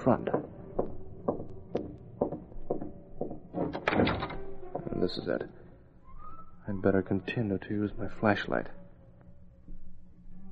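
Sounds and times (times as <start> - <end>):
speech: 0.0 - 0.4, 5.0 - 5.6, 6.7 - 8.8
door being opened with wooden clunks: 0.0 - 5.0
door scraping as it swings: 2.2 - 5.5.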